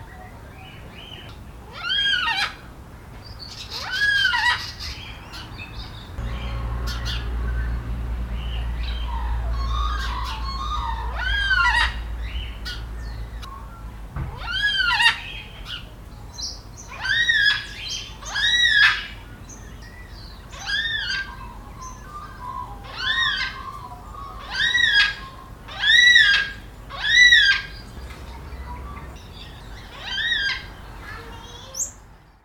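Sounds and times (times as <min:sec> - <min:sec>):
black cockatoo calls with harsh pulses, wailing note and squawks: 0:01.1 - 0:02.7, 0:03.5 - 0:05.6, 0:06.2 - 0:07.8, 0:08.6 - 0:15.9, 0:16.8 - 0:19.4, 0:20.5 - 0:32.0.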